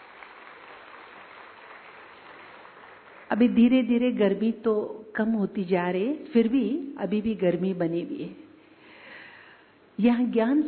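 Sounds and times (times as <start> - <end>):
crowd clapping: 0.0 - 3.4
speech: 3.3 - 8.4, 10.0 - 10.6.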